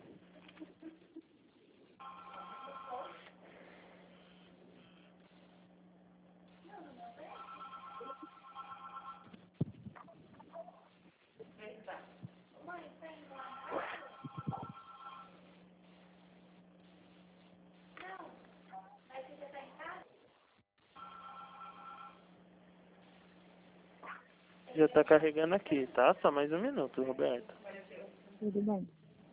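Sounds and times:
telephone ringing: 0:02.0 - 0:03.3, 0:07.2 - 0:09.4, 0:13.3 - 0:15.5, 0:20.9 - 0:22.3
speech: 0:24.8 - 0:27.6, 0:28.4 - 0:28.9.

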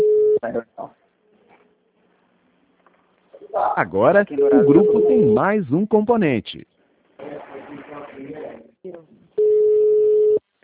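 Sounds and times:
electronic call tone of a group chat call: 0:00.0 - 0:00.4, 0:04.4 - 0:05.4, 0:09.4 - 0:10.4
speech: 0:00.4 - 0:01.0, 0:03.5 - 0:06.7
voices: 0:03.3 - 0:05.5, 0:07.2 - 0:09.2.

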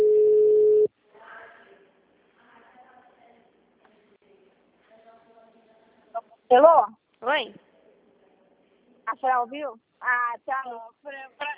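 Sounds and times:
telephone ringing tone on a call placed over VoIP: 0:00.0 - 0:00.9
speech: 0:06.5 - 0:07.6, 0:09.1 - 0:11.5.

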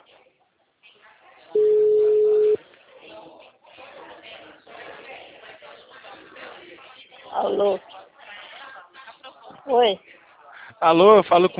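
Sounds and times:
ringback tone on an outgoing phone call: 0:01.6 - 0:02.6
speech: 0:07.6 - 0:07.9, 0:09.7 - 0:10.2, 0:10.8 - 0:11.5.

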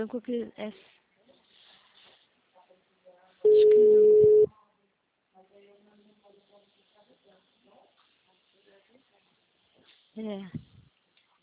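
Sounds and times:
speech: 0:00.0 - 0:01.0, 0:03.4 - 0:04.3, 0:10.2 - 0:10.7
telephone busy tone after a dropped call: 0:03.5 - 0:04.5.

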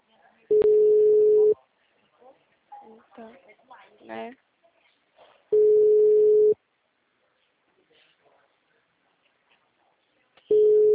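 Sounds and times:
telephone ringback tone: 0:00.5 - 0:01.5, 0:05.6 - 0:06.6, 0:10.5 - 0:10.9.

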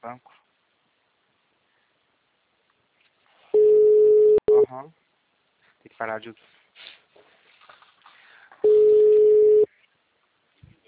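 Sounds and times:
speech: 0:00.0 - 0:00.4, 0:04.7 - 0:05.0, 0:05.8 - 0:06.9
telephone busy signal: 0:03.6 - 0:04.6, 0:08.6 - 0:09.7.

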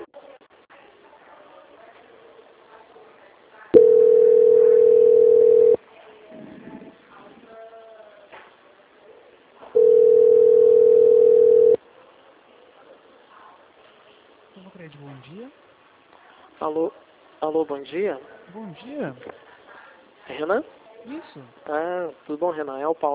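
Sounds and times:
faint low sound: 0:00.0 - 0:23.1
telephone line tone during call transfer: 0:03.8 - 0:05.8, 0:09.8 - 0:11.8
speech: 0:17.8 - 0:19.4, 0:20.4 - 0:23.1.

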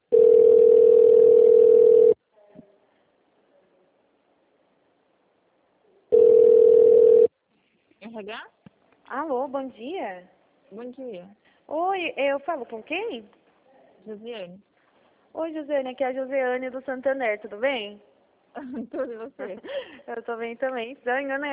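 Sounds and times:
telephone beeps while a bank call is transferred: 0:00.1 - 0:02.1, 0:06.1 - 0:07.3
speech: 0:10.9 - 0:13.4, 0:14.1 - 0:14.7, 0:15.3 - 0:21.4.

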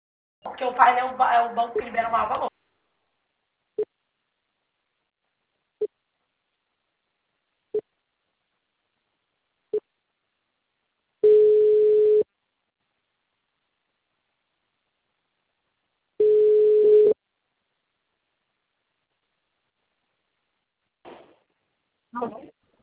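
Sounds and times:
speech: 0:00.6 - 0:02.5, 0:22.2 - 0:22.5
busy signal after a dropped phone call: 0:11.2 - 0:12.2, 0:16.2 - 0:17.2.

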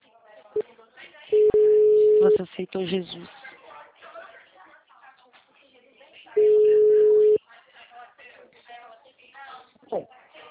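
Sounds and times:
people talking over a phone line: 0:00.5 - 0:05.0, 0:06.3 - 0:07.5
telephone busy tone after a dropped call: 0:01.4 - 0:02.4, 0:06.4 - 0:07.4
speech: 0:02.2 - 0:03.4.

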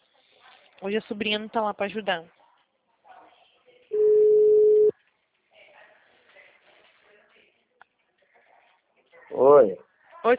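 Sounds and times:
speech: 0:00.8 - 0:02.4, 0:09.6 - 0:10.3
telephone tone after a dropped call: 0:04.0 - 0:04.9.

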